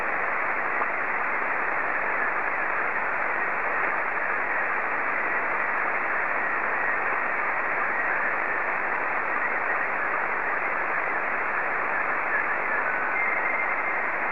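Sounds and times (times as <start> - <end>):
PD50 slow-scan television signal: 0.0 - 14.3.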